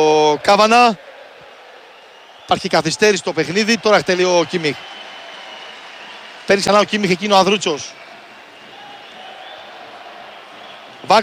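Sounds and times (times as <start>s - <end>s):
speech: 0.0s - 1.0s, 2.5s - 4.9s, 6.5s - 8.0s, 11.0s - 11.2s
national team football fans applauding in stadium stands: 0.0s - 11.2s.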